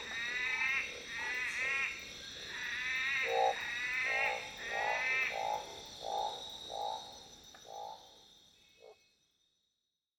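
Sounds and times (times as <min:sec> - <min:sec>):
Black Mountain night treefrog: 0:00.0 - 0:08.1.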